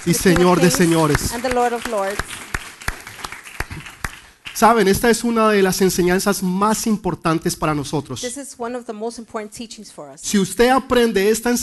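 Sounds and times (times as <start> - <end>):
speech: 0.0 - 2.4, 4.6 - 11.6
audience applause: 0.0 - 4.8.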